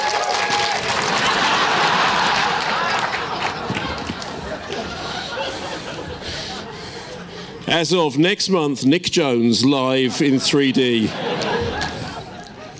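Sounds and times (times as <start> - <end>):
crowd applause: 0.0 - 6.6, 11.0 - 12.7
laughter: 0.6 - 7.7, 9.8 - 12.7
speech: 7.7 - 11.5.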